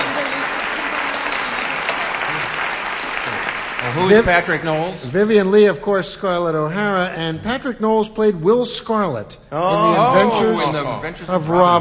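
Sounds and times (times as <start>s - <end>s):
crowd applause: 0.0s - 5.2s
speech: 3.9s - 11.8s.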